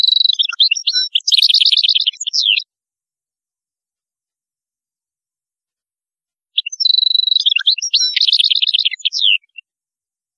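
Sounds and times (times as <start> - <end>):
European goldfinch song: 0.0 - 2.7, 6.6 - 9.7.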